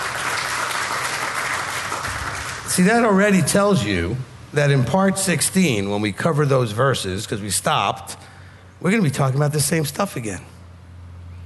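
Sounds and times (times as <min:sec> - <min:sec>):
church congregation applause during a sermon: 0:00.0 - 0:03.1
speech: 0:02.7 - 0:10.5.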